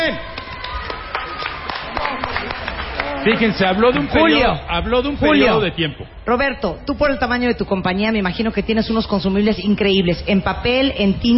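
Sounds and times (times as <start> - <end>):
small group applauding: 0.0 - 4.5
speech: 3.2 - 11.3.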